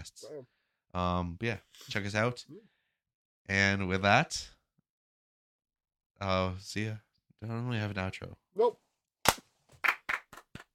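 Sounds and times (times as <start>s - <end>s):
speech: 0.1s - 2.8s, 3.5s - 4.6s, 6.2s - 8.8s
sharp hand claps to sync audio: 9.2s - 10.7s.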